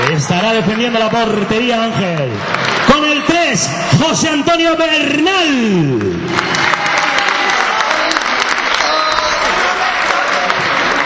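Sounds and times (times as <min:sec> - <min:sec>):
speech: 0:00.2 - 0:06.8
audience applause: 0:01.8 - 0:03.3, 0:06.3 - 0:11.0.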